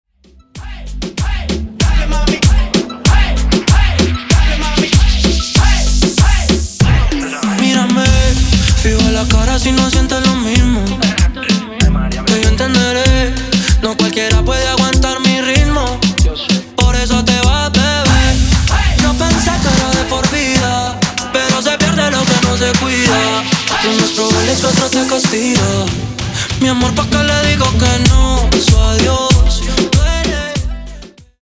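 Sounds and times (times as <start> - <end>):
remix intro and outro music at 96 BPM: 0.2 - 31.4.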